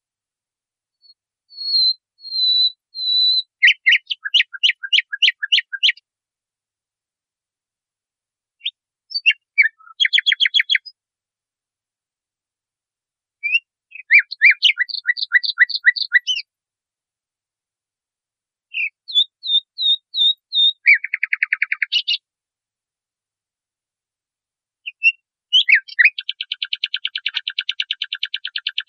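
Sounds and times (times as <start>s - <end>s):
nightingale singing: 1.0s - 6.0s, 8.6s - 11.0s, 13.4s - 16.5s, 18.7s - 22.2s, 24.8s - 28.8s.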